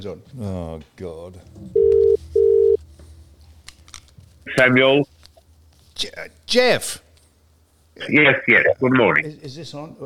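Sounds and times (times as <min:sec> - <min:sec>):
speech: 0:00.0 - 0:02.6, 0:04.5 - 0:05.2, 0:06.0 - 0:07.0, 0:08.0 - 0:10.0
ringback tone of an outgoing phone call: 0:01.8 - 0:02.8.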